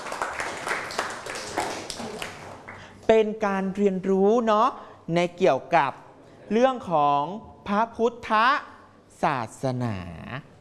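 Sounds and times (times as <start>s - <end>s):
students clapping in a classroom: 0.0s - 2.9s
speech: 3.1s - 10.5s.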